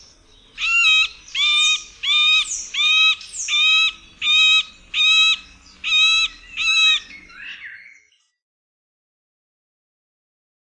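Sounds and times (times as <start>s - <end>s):
middle spotted woodpecker: 0.6s - 7.2s.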